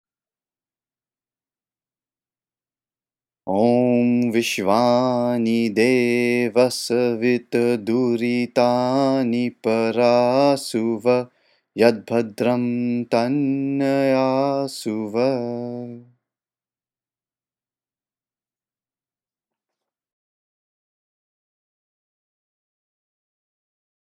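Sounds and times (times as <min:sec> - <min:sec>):
person chanting a Sanskrit mantra: 0:03.5 - 0:16.1.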